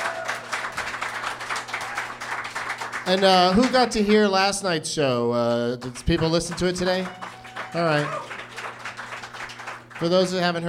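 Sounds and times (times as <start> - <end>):
crowd applauding: 0.0 - 4.3, 5.8 - 10.6
speech: 3.1 - 8.3, 10.0 - 10.6.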